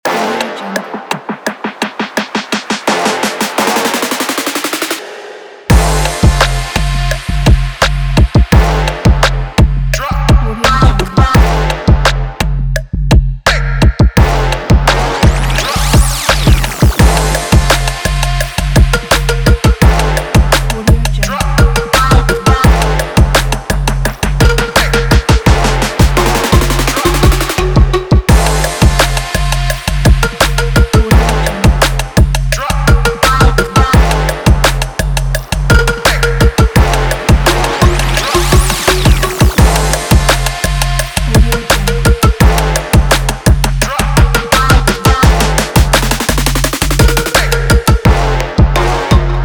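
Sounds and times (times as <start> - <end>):
trap rap music: 0.0 - 49.4.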